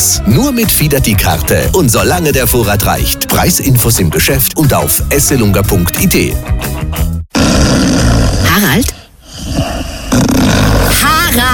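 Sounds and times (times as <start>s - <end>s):
speech: 0.2s - 6.7s
man snoring: 7.3s - 11.2s.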